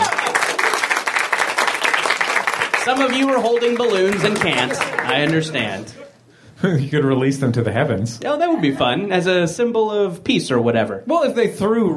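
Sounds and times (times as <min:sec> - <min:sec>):
audience applause at a live comedy stage show: 0:00.0 - 0:06.0
speech: 0:02.8 - 0:11.9.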